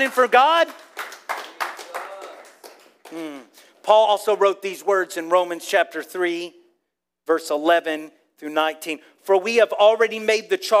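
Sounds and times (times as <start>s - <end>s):
speech: 0.0s - 0.9s, 3.1s - 6.6s, 7.3s - 10.7s
audience members clapping sparsely: 0.0s - 4.2s.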